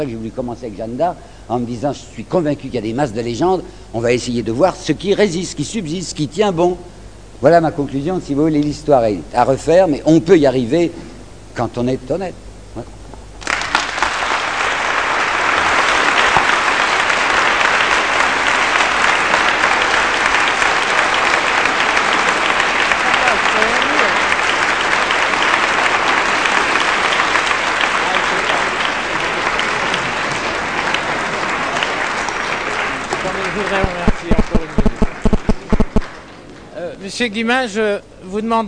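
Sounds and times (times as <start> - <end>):
speech: 0.0 - 13.0, 37.1 - 38.6
audience applauding after an evening lecture on Robespierre: 13.4 - 36.7.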